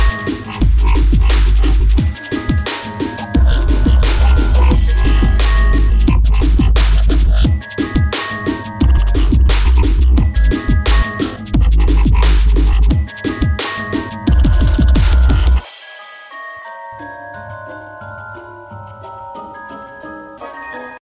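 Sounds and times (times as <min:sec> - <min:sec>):
dubstep drum and bass remix: 0:00.0 - 0:16.4.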